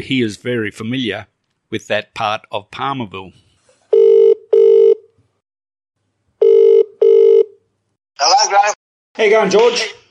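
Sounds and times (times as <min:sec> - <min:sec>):
speech: 0:00.0 - 0:03.4, 0:08.2 - 0:10.0
telephone ringback tone on an outgoing call: 0:03.9 - 0:05.0, 0:06.4 - 0:07.5.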